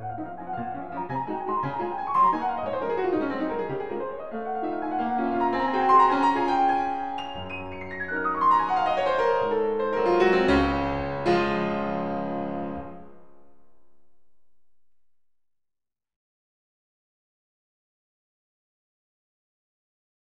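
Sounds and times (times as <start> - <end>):
waltz in D flat major: 0.0 - 13.6.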